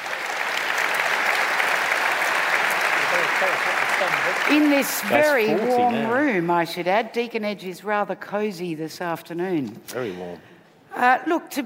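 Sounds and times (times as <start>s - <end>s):
audience applause welcoming a speaker at Deakin Edge in Melbourne: 0.0s - 6.0s
speech: 3.4s - 11.6s.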